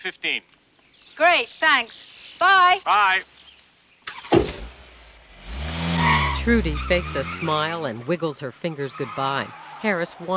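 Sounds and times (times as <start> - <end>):
speech: 0.0 - 0.6, 1.2 - 3.4, 6.4 - 10.3
car roaring off: 4.1 - 10.3.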